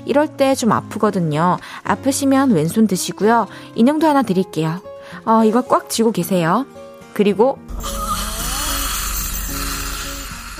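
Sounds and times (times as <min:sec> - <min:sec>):
speech: 0:00.1 - 0:08.0
dental ultrasonic scaler buzzing during teeth cleaning: 0:07.7 - 0:10.5
wavering tonal whines: 0:07.7 - 0:10.5
high hiss: 0:07.9 - 0:10.5.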